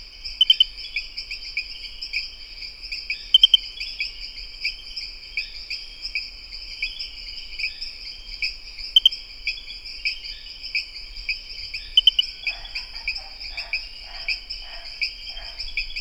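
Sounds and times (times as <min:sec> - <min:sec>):
Pristimantis espedeus: 0:00.3 - 0:01.1, 0:03.1 - 0:04.0, 0:08.8 - 0:10.4, 0:11.7 - 0:15.9.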